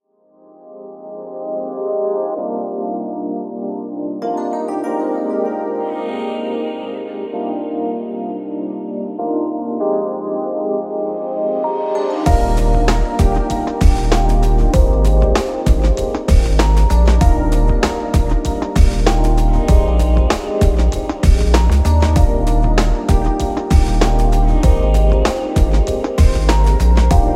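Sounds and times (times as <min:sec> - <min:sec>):
lounge music: 0:01.1 - 0:27.3.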